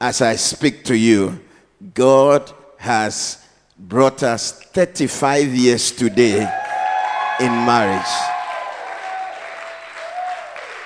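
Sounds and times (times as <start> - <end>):
speech: 0.0 - 6.6, 7.4 - 8.3
audience clapping: 6.2 - 10.8.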